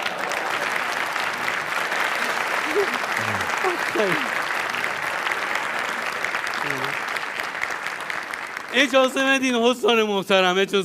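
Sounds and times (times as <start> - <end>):
laughter: 0.0 - 5.1
large audience crowd roar of voices: 0.0 - 7.0
applause: 0.0 - 10.0
speech: 3.9 - 4.4, 8.8 - 10.8.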